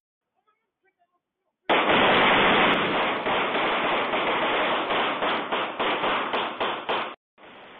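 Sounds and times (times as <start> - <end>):
gunfire during a gang shootout in Oakland, California: 1.7 - 7.2.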